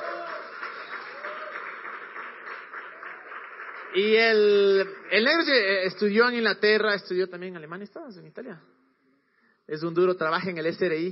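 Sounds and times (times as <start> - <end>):
crowd applauding: 0.0 - 5.8
speech: 3.9 - 8.8, 9.7 - 11.0.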